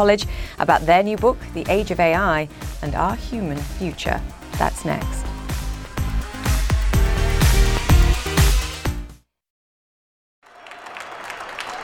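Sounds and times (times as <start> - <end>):
speech: 0.0 - 5.3
people cheering at New York Stock Exchange opening: 2.7 - 8.8, 10.4 - 11.8.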